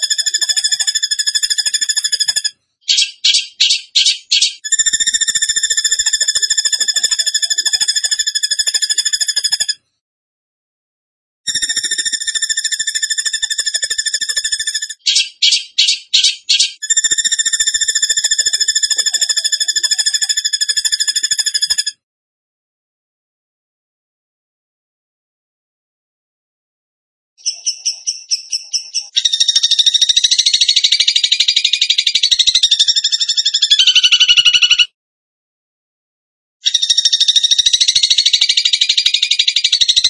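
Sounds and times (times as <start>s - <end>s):
bird song of rapid high trills: 0.0s - 9.7s, 11.5s - 21.9s, 27.4s - 34.9s, 36.6s - 40.0s.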